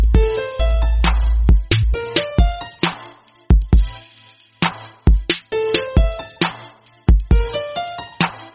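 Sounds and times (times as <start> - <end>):
trap ringtone: 0.1 - 2.9, 5.7 - 8.2.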